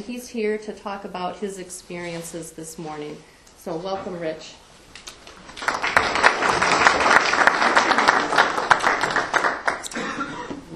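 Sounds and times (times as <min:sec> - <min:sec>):
speech: 0:00.0 - 0:04.6
audience applause: 0:05.4 - 0:10.0.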